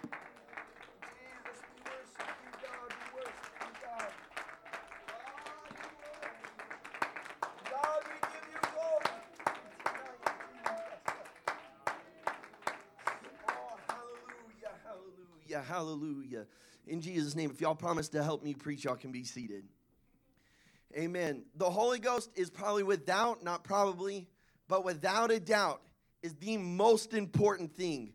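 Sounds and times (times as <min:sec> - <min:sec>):
audience hand clapping: 0:00.0 - 0:15.1
speech: 0:15.6 - 0:19.8, 0:21.0 - 0:28.1.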